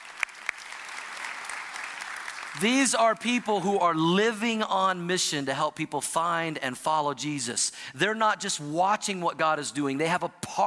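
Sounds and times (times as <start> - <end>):
audience applause: 0.0 - 2.6
speech: 2.6 - 10.6.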